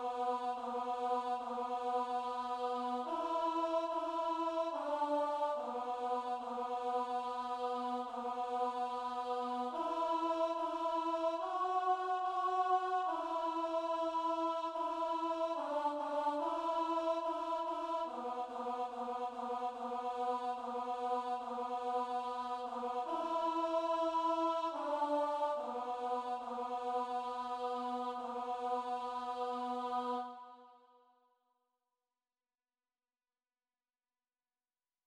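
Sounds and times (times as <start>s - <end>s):
altar mass setting: 0.0s - 30.3s.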